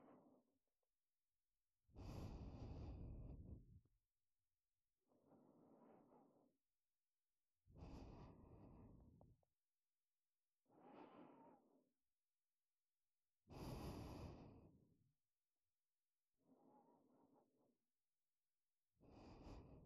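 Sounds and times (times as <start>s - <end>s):
breathing in ASMR on the right side: 1.9s - 3.8s, 5.2s - 6.4s, 7.7s - 9.3s, 10.7s - 11.8s, 13.5s - 14.9s, 19.0s - 19.8s.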